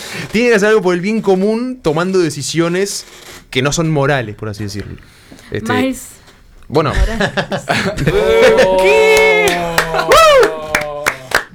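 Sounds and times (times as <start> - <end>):
speech: 0.2 - 10.2
laughter: 6.9 - 11.3
hand claps: 9.1 - 11.5.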